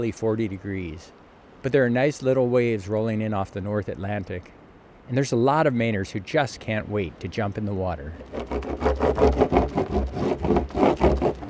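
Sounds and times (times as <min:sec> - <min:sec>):
speech: 0:00.0 - 0:09.4
surfboard being rubbed with wax: 0:08.2 - 0:11.4.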